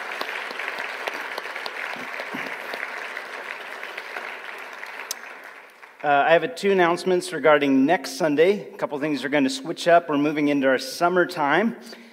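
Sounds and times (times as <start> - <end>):
audience round of applause: 0.0 - 6.2
speech: 6.0 - 12.0.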